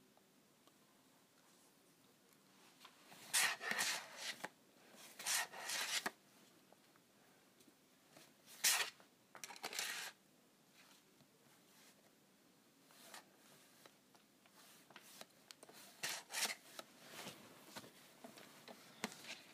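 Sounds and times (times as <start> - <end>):
scratching on a calculator: 3.2 - 4.5, 5.1 - 6.2, 8.6 - 10.2, 14.5 - 16.8.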